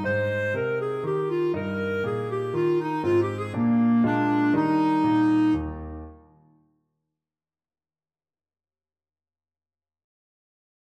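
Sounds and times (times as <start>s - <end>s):
clarinet playing a minuet: 0.0s - 6.2s.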